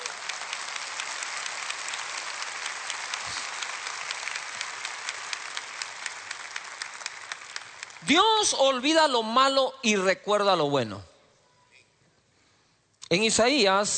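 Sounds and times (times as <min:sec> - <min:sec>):
audience applause: 0:00.0 - 0:08.6
speech: 0:08.1 - 0:11.1, 0:13.1 - 0:13.9.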